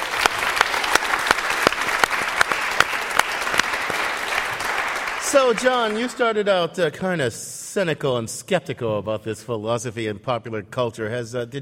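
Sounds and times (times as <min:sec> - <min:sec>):
live audience applause: 0:00.0 - 0:06.4
speech: 0:05.3 - 0:11.6.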